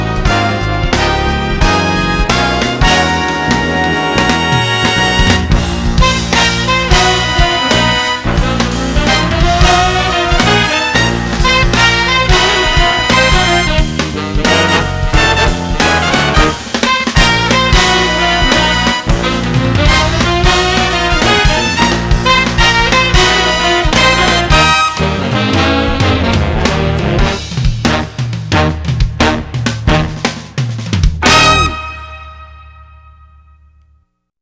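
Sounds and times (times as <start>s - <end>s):
brass reed synth tone: 0.0s - 34.0s.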